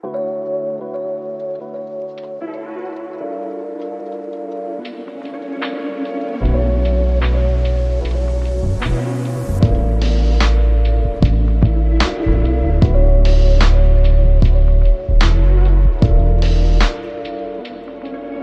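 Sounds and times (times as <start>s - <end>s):
beats: 4.8s - 18.2s.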